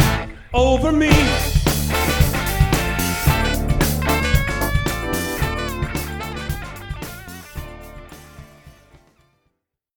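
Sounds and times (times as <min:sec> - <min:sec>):
cover band playing: 0:01.1 - 0:09.0.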